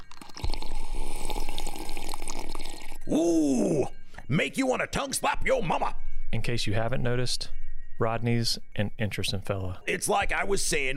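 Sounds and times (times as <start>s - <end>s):
man taking a drink: 0.0s - 4.2s
speech: 3.1s - 10.9s.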